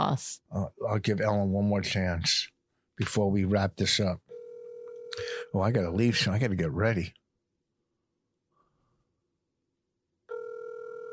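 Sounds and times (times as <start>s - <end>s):
speech: 0.1s - 4.2s, 5.2s - 7.2s
telephone ringing tone on an unanswered outgoing call: 4.3s - 5.4s, 10.3s - 11.1s.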